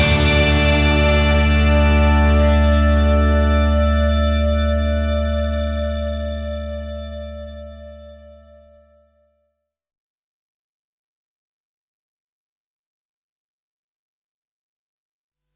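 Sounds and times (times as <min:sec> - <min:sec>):
rock and roll music: 0:00.0 - 0:06.6.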